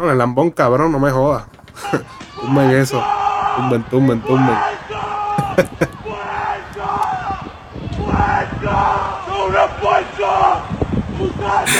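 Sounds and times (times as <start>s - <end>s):
speech: 0.0s - 4.9s, 5.6s - 5.8s
laughter: 1.7s - 2.4s, 5.3s - 6.1s
fans shouting and cheering: 1.8s - 11.7s.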